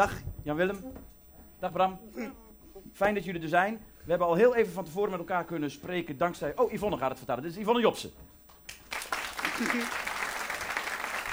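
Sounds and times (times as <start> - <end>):
speech: 0.0 - 8.3, 9.6 - 10.1
applause: 8.5 - 11.3.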